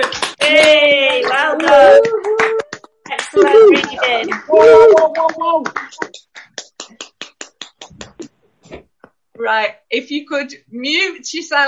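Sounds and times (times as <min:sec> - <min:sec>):
group clapping over video call: 0:00.0 - 0:08.3
speech: 0:09.5 - 0:11.6.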